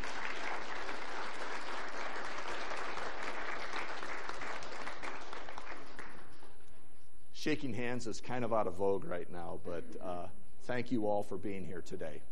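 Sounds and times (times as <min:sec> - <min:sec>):
audience applause: 0:00.0 - 0:06.5
speech: 0:07.4 - 0:12.2.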